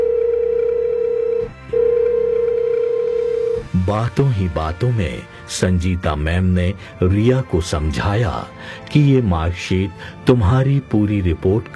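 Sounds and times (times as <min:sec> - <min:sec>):
telephone ringing: 0:00.0 - 0:03.7
speech: 0:03.9 - 0:11.7.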